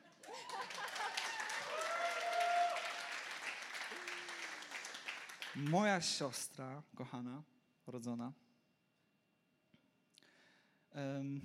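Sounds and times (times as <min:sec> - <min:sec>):
audience clapping: 0:00.0 - 0:06.2
speech: 0:05.6 - 0:08.4, 0:11.0 - 0:11.4.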